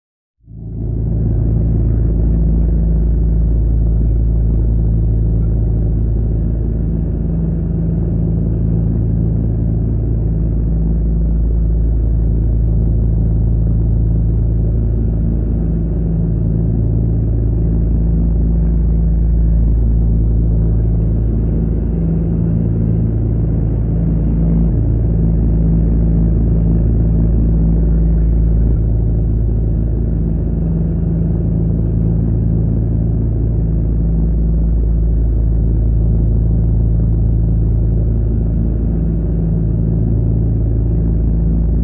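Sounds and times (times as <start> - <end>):
antique four-engine propeller aircraft in steady flight, low drone heard from inside: 0.5 - 41.8.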